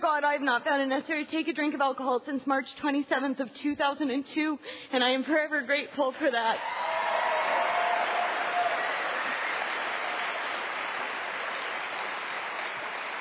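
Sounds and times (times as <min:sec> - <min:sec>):
speech: 0:00.2 - 0:06.9
audience applauding: 0:06.6 - 0:13.1.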